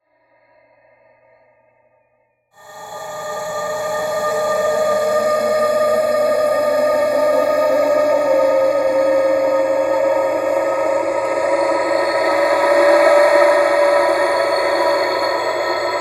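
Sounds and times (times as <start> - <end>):
Andean wind flute: 3.0 - 15.9.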